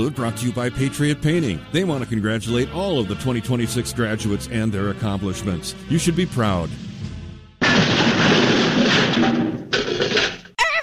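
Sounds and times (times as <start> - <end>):
speech: 0.0 - 6.9
car crashing into garage door: 7.6 - 10.4.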